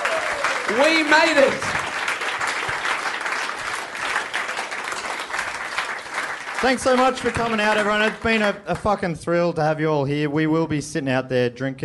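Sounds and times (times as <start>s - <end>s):
audience applause at the close of a live comedy show: 0.0s - 8.6s
speech: 0.7s - 1.8s, 6.6s - 11.8s.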